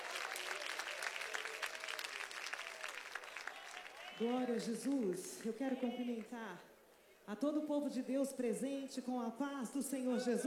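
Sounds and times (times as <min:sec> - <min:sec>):
applause: 0:00.0 - 0:06.4
speech: 0:04.2 - 0:06.7, 0:07.3 - 0:10.4.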